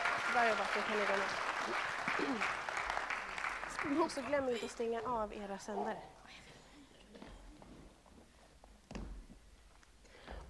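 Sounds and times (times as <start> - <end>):
audience applause: 0.0 - 4.8
speech: 0.4 - 2.7, 3.8 - 6.2.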